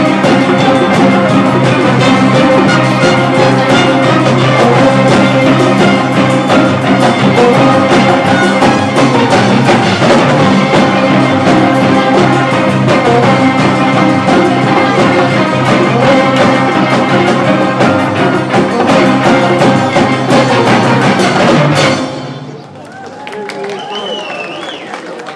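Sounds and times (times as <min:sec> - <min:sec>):
xylophone orchestra: 0:00.0 - 0:22.4.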